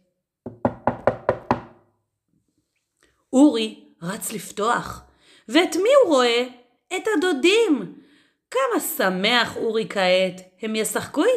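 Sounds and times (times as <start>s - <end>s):
knocking on a door: 0.5s - 1.9s
speech: 3.4s - 11.3s.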